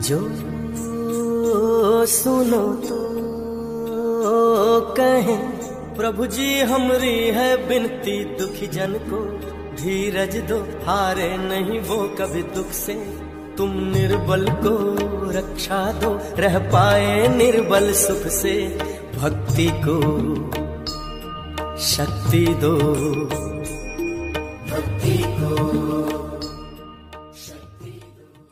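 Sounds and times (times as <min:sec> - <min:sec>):
bhajan ringtone: 0:00.0 - 0:28.4.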